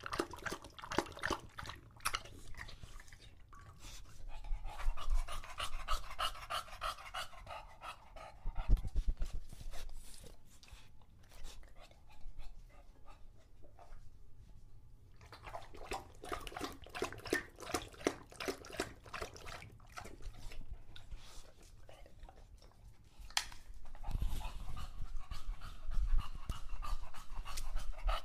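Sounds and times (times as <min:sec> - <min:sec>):
English bulldog lapping water from a bowl: 0:00.0 - 0:04.0, 0:15.2 - 0:22.8
English bulldog heavy panting: 0:00.0 - 0:14.0, 0:15.4 - 0:28.2.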